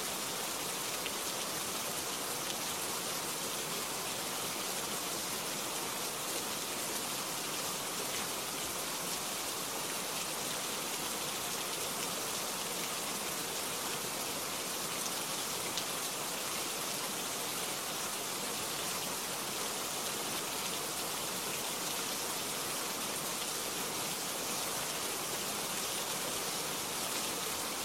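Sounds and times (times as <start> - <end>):
light rain: 0.0 - 27.8.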